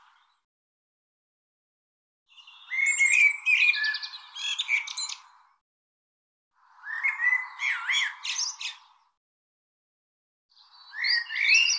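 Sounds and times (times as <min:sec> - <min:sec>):
bird song with rapid varied twittering and buzzy trills: 0:00.0 - 0:00.4, 0:02.3 - 0:05.6, 0:06.6 - 0:09.2, 0:10.5 - 0:11.7.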